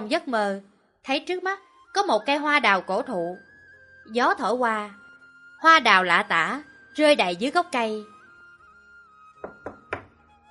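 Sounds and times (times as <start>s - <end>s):
speech: 0.1s - 5.0s, 5.6s - 8.1s
knocks on a door: 9.4s - 10.2s.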